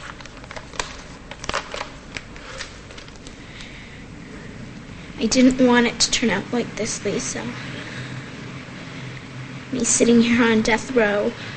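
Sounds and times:
folded paper letter being unfolded and smoothed: 0.0 - 3.8
speech: 5.2 - 7.7, 9.7 - 11.5.

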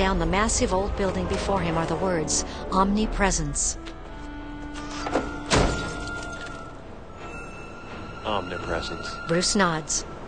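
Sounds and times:
speech: 0.0 - 3.9, 8.3 - 10.1
car door shutting with a dull thud in a deserted alley: 4.8 - 6.4.

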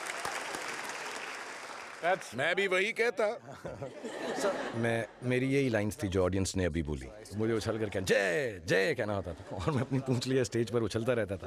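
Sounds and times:
audience applause: 0.0 - 2.4
speech: 2.0 - 11.4
laughter: 3.4 - 5.2, 9.0 - 10.7.

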